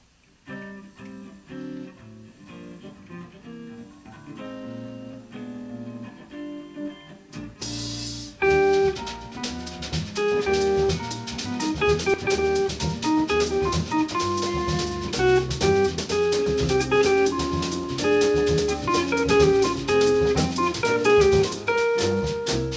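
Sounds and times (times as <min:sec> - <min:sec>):
samba music: 0:07.6 - 0:22.7.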